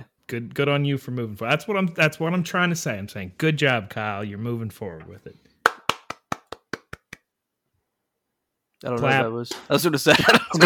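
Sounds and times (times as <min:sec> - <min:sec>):
speech: 0:00.3 - 0:05.5, 0:08.8 - 0:10.6
hand clapping: 0:05.6 - 0:07.3
laughter: 0:09.9 - 0:10.6.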